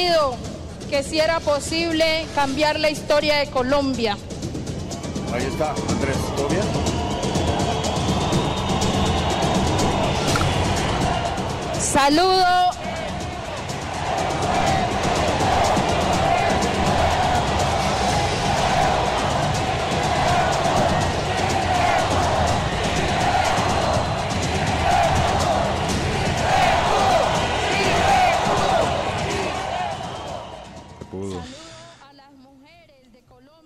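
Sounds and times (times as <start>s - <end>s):
speech: 0.0s - 4.3s, 5.3s - 6.9s, 11.9s - 12.8s
crowd of supporters chanting: 6.9s - 31.2s.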